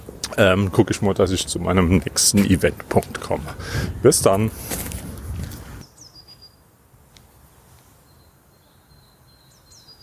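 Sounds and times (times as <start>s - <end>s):
birdsong outdoors at the Tetraeder in Bottrop: 0.0s - 6.7s, 8.0s - 10.0s
speech: 0.4s - 4.9s.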